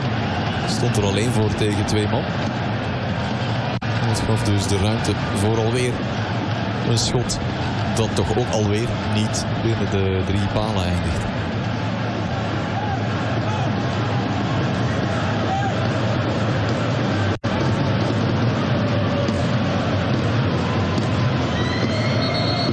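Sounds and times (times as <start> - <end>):
stadium crowd whistling at half-time: 0.0 - 9.9, 11.6 - 22.7
speech: 0.8 - 2.8, 4.1 - 11.4.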